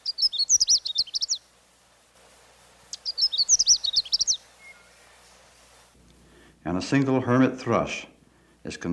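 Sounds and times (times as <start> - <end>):
Canada warbler calling witchet a witchet: 0.0 - 5.8
speech: 6.7 - 8.1, 8.7 - 8.9.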